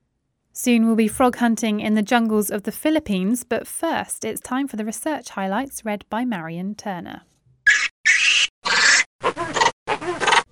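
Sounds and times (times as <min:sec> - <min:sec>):
speech: 0:00.6 - 0:07.3
lemur calls: 0:07.7 - 0:10.4.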